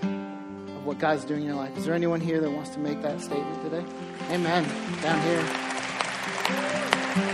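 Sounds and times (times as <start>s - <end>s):
speech: 0.9s - 5.7s
audience cheering: 4.3s - 7.3s.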